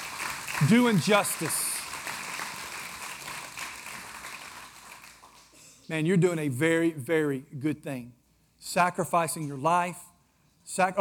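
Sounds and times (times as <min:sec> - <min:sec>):
audience clapping: 0:00.0 - 0:05.6
speech: 0:00.6 - 0:01.7, 0:05.9 - 0:10.1, 0:10.7 - 0:11.0.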